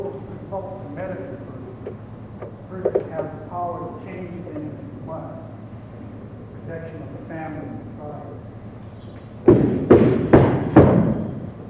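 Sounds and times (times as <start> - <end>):
knocking on a door: 9.5 - 11.3.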